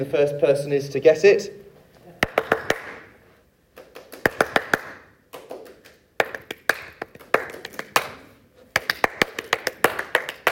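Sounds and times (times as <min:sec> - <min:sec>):
speech: 0:00.0 - 0:01.6
hands clapping a well-known symphony rhythm: 0:02.2 - 0:03.1, 0:03.7 - 0:10.5.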